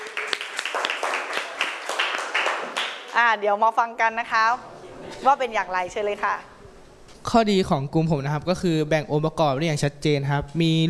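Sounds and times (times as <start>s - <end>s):
classroom clapping: 0.0s - 3.4s
speech: 3.2s - 6.5s, 7.3s - 10.8s.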